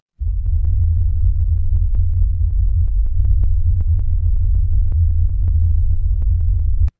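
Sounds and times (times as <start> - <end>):
horror heartbeat: 0.1 - 6.9.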